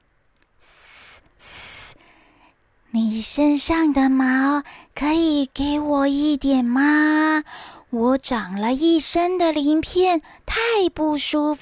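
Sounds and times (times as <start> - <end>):
voice imitating a snake's hiss: 0.6 - 2.0
speech: 2.9 - 11.5.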